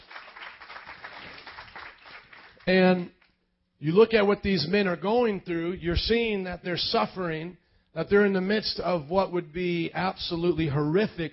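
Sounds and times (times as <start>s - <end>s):
audience hand clapping: 0.0s - 3.3s
speech: 2.7s - 3.2s, 3.8s - 11.3s.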